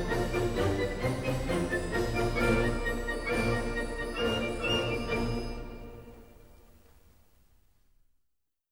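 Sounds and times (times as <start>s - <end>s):
march music: 0.0s - 6.6s.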